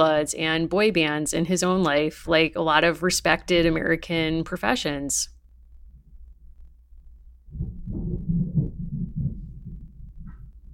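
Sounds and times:
speech: 0.0s - 5.3s
thunder booming in a deep low rumble: 7.2s - 10.7s.

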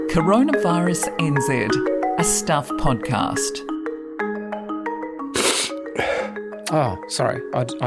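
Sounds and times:
speech: 0.1s - 3.7s, 6.7s - 7.8s
person sniffing: 5.3s - 6.4s.

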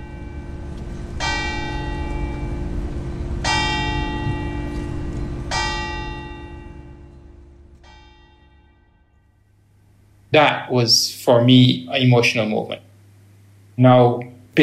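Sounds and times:
clock tower bell striking 12 o'clock: 0.0s - 9.3s
speech: 10.3s - 12.9s, 13.8s - 14.6s.

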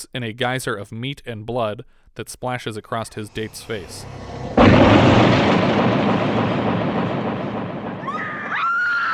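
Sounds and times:
speech: 0.0s - 5.4s
shotgun blast: 3.4s - 8.7s.

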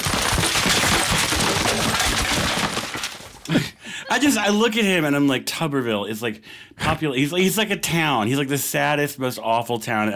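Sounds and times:
sound effect of falling down stairs: 0.0s - 3.6s
speech: 3.5s - 10.1s.

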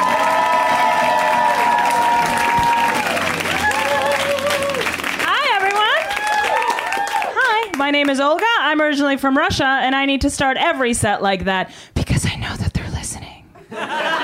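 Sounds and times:
audience applauding and cheering for a comedian at a stand-up show: 0.0s - 8.6s
speech: 7.9s - 12.4s
laughter: 13.6s - 14.2s.

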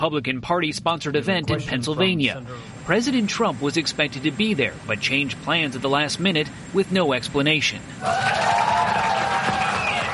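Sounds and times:
speech: 0.0s - 8.6s
crowd cheering: 8.0s - 10.1s.

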